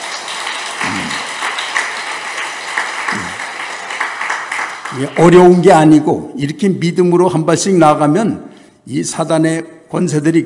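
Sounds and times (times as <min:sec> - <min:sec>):
audience clapping: 0:00.0 - 0:05.7
speech: 0:05.0 - 0:10.4.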